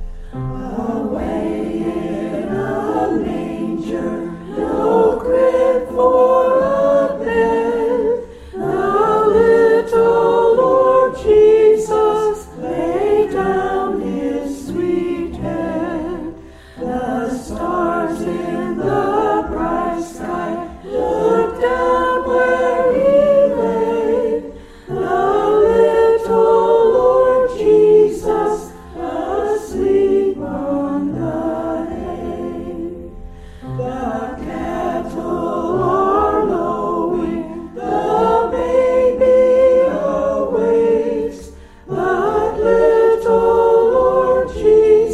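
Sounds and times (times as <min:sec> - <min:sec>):
choir singing: 0:00.3 - 0:45.1.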